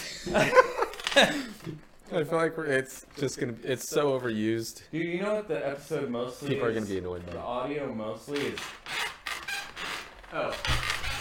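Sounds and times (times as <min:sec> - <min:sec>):
laughter: 0:00.0 - 0:01.8
speech: 0:00.2 - 0:08.9, 0:10.3 - 0:10.9
creaky chair creaking: 0:00.6 - 0:02.0, 0:06.6 - 0:11.1.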